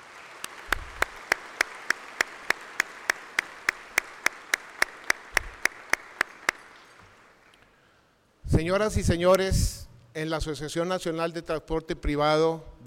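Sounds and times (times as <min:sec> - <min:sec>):
audience applause: 0:00.0 - 0:07.6
speech: 0:08.6 - 0:12.8.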